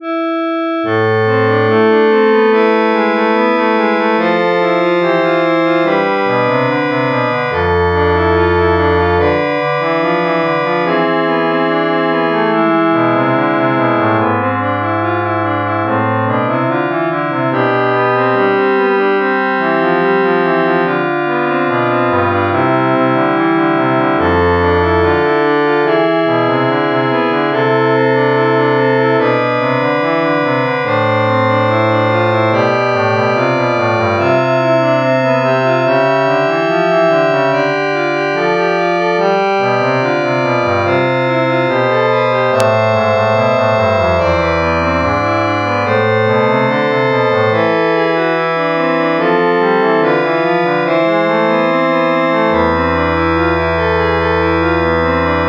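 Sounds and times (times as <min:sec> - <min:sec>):
chorale prelude: 0:00.0 - 0:55.4.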